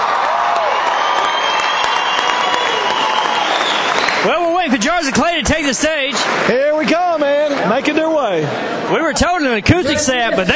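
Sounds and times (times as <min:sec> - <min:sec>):
concert crowd clapping for a band: 0:00.0 - 0:08.1
speech: 0:04.2 - 0:10.5.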